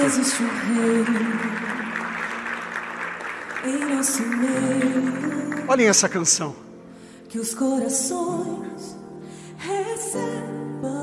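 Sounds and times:
speech: 0:00.0 - 0:01.9, 0:03.6 - 0:06.7, 0:07.3 - 0:11.0
audience applauding: 0:00.0 - 0:06.6.

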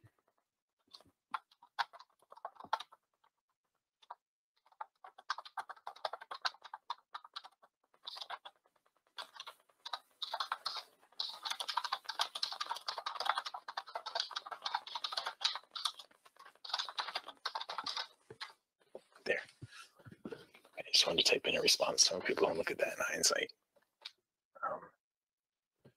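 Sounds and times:
fingers typing on a computer keyboard: 0:00.9 - 0:03.3, 0:04.0 - 0:18.6
speech: 0:21.0 - 0:23.6.

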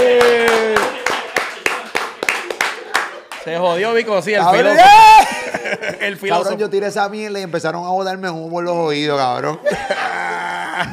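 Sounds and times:
applause: 0:00.0 - 0:03.5
speech: 0:03.4 - 0:10.9
laughter: 0:04.7 - 0:06.5, 0:09.5 - 0:10.9.

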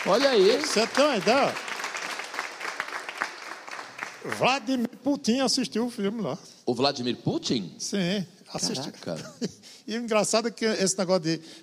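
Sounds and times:
speech: 0:00.0 - 0:01.7, 0:04.2 - 0:11.6
applause: 0:00.0 - 0:04.8
laughter: 0:08.6 - 0:09.8.

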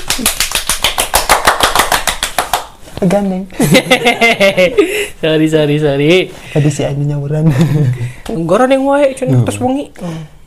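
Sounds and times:
applause: 0:00.0 - 0:02.7
speech: 0:00.2 - 0:00.4, 0:03.0 - 0:10.3
laughter: 0:03.6 - 0:05.0.

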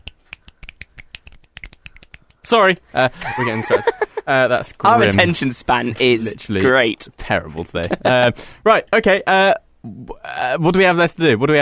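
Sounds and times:
finger snapping: 0:00.0 - 0:02.4
speech: 0:02.5 - 0:11.6
laughter: 0:03.1 - 0:04.3.

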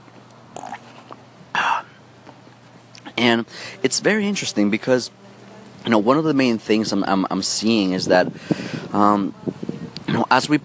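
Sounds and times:
throaty gulp: 0:00.5 - 0:02.0
slurping sip of water: 0:00.6 - 0:01.2
speech: 0:03.2 - 0:05.2, 0:05.9 - 0:09.5, 0:10.2 - 0:10.6.

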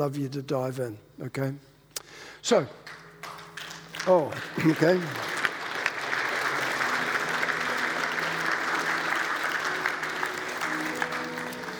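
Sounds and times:
speech: 0:00.0 - 0:01.7, 0:02.4 - 0:03.0, 0:04.0 - 0:05.3
audience applause: 0:02.8 - 0:11.7.

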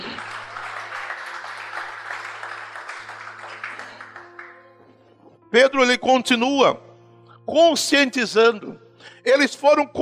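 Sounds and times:
audience applauding: 0:00.0 - 0:04.7
speech: 0:05.5 - 0:06.8, 0:07.5 - 0:10.0.

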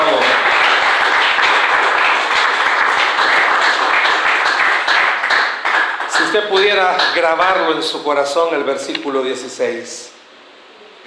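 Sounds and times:
audience applause: 0:00.0 - 0:07.6
speech: 0:06.5 - 0:10.2.

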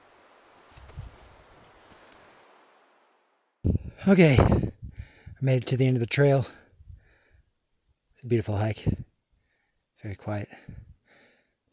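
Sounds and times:
soft wind through treetops at the base of the Chisos Mountains in Big Bend: 0:00.0 - 0:11.7
light rustles: 0:00.6 - 0:02.5
speech: 0:04.0 - 0:04.8, 0:05.4 - 0:06.6, 0:08.2 - 0:09.0, 0:10.0 - 0:10.8.

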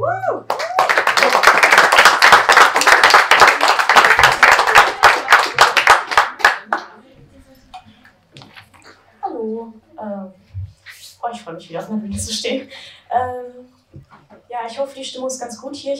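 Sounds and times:
audience applause: 0:00.4 - 0:06.9
speech: 0:11.5 - 0:13.3, 0:14.7 - 0:15.9.

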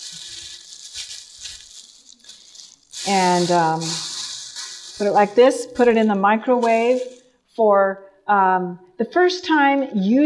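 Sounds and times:
thin plastic grocery bag crinkly rustling: 0:00.0 - 0:07.2
speech: 0:03.0 - 0:04.1, 0:05.0 - 0:10.2.

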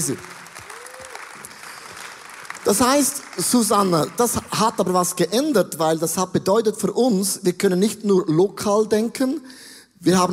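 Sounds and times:
speech: 0:00.0 - 0:00.4, 0:02.7 - 0:10.3
audience clapping: 0:00.0 - 0:05.3
faint whooping: 0:00.6 - 0:01.4.

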